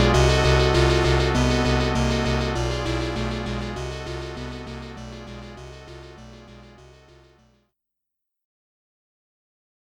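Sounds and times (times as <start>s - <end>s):
boss battle background music: 0.0s - 7.2s.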